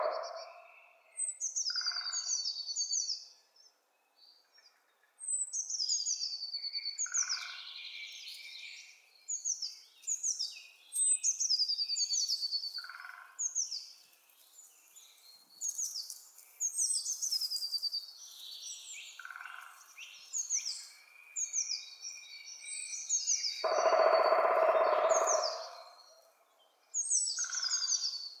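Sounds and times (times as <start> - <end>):
woodpeckers Picidae: 0.0 - 0.7, 23.6 - 26.3.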